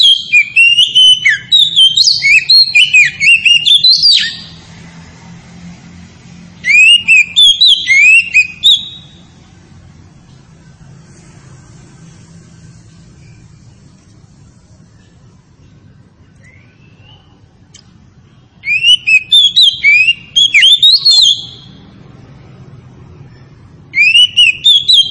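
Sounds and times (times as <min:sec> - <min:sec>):
Oriental magpie-robin song: 0:00.0 - 0:04.6, 0:06.6 - 0:09.3, 0:16.2 - 0:17.5, 0:18.6 - 0:21.9, 0:23.9 - 0:25.0.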